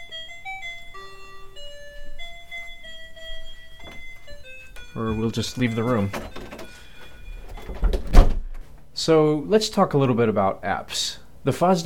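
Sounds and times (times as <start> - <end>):
timer alarm playing a simple electronic melody: 0.0 - 8.2
speech: 5.0 - 6.4, 9.0 - 11.8.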